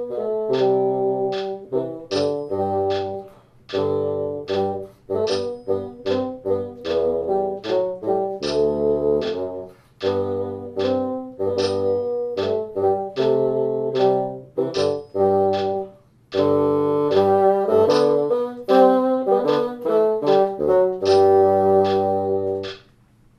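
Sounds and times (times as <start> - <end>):
two bassoons playing: 0.0 - 22.8.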